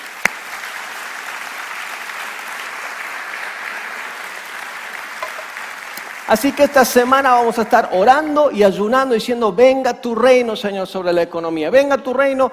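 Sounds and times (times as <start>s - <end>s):
audience applause: 0.0s - 8.0s
speech: 6.3s - 12.5s.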